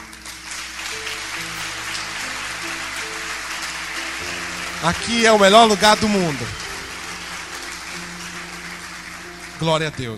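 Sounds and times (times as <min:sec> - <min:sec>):
audience applause: 0:00.0 - 0:10.1
low organ or keyboard tones: 0:00.0 - 0:10.1
speech: 0:04.8 - 0:06.6, 0:09.6 - 0:10.1.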